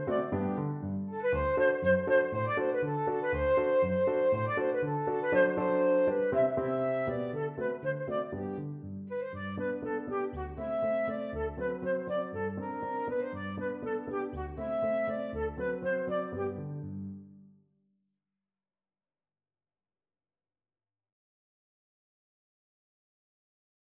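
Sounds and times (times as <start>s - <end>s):
flute playing an ecossaise: 0.0s - 16.7s.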